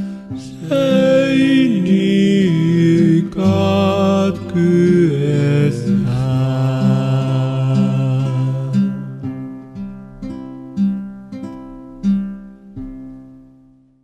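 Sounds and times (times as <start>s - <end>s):
two men singing a carol in Finnish: 0.4s - 9.2s.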